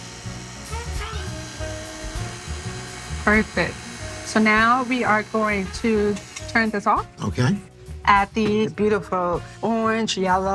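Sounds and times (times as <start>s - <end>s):
electric mixer whirring: 0.0s - 6.9s
speech: 3.2s - 10.5s.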